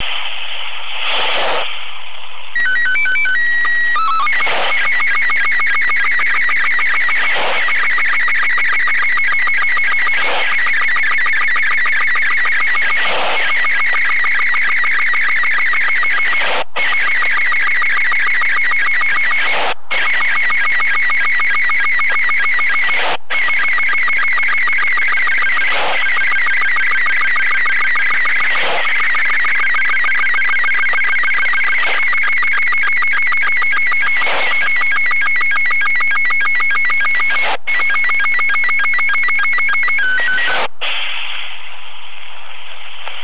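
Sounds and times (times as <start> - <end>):
SSTV signal: 0.0 - 43.2.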